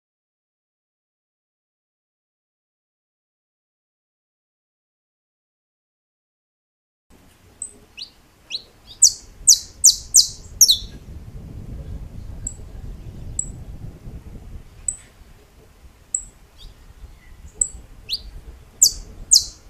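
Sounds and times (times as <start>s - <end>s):
saffron finch song: 7.1s - 19.6s.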